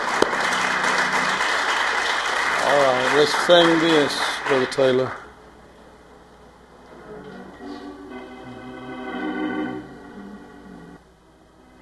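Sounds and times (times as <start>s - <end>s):
audience clapping hands: 0.0s - 5.3s
speech: 2.7s - 5.2s.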